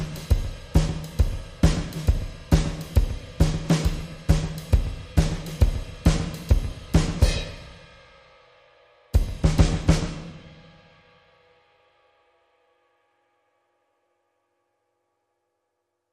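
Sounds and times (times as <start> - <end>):
drums: 0.0 - 12.8.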